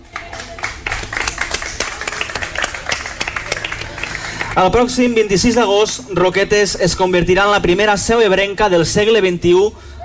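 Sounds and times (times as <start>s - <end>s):
crowd applause: 0.0s - 6.3s
speech: 4.6s - 9.9s.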